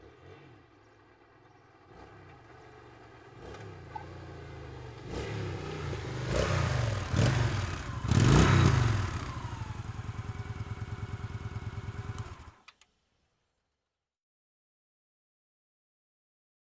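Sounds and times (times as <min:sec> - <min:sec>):
Honda VT 1100 Shadow motorcycle engine: 0:00.1 - 0:12.7.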